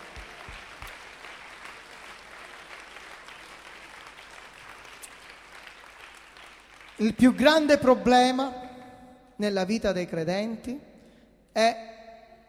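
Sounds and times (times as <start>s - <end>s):
crowd clapping steadily: 0.0s - 7.7s
speech: 7.0s - 8.6s, 9.4s - 10.9s, 11.6s - 11.9s.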